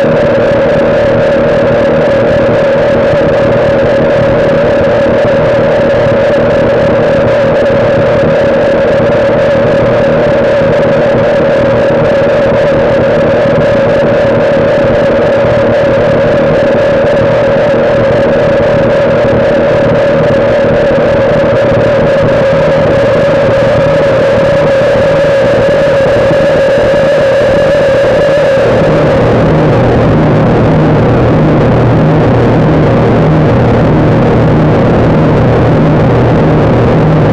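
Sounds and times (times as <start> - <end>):
inharmonic overtones: 0.0 - 37.3.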